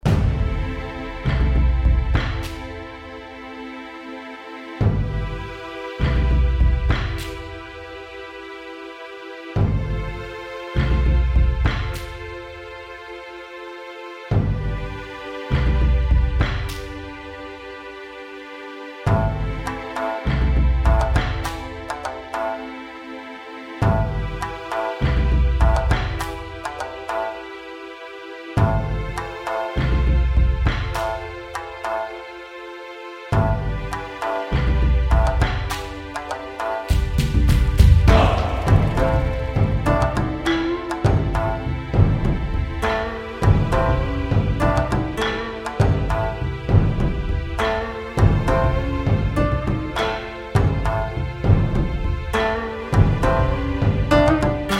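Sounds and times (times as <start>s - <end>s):
gym drums: 0.0s - 3.2s, 4.8s - 7.8s, 9.6s - 12.6s, 14.3s - 17.2s, 19.1s - 22.6s, 23.8s - 27.4s, 28.6s - 32.0s, 33.4s - 54.7s.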